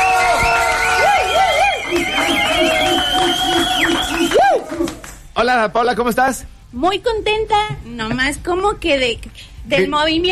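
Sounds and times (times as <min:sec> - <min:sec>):
cheering: 0:00.0 - 0:05.2
applause: 0:00.0 - 0:05.3
speech: 0:05.6 - 0:10.2.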